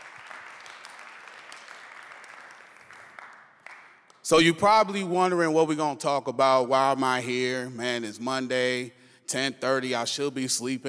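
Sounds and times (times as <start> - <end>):
audience applause for worship team: 0.0 - 4.2
speech: 4.3 - 10.8.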